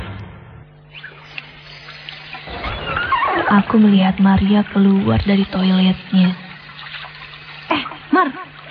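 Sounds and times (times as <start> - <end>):
running water at a sink while hands are washed: 0.9 - 8.6
small water splashes: 1.1 - 7.8
speech: 3.5 - 6.5, 7.8 - 8.6.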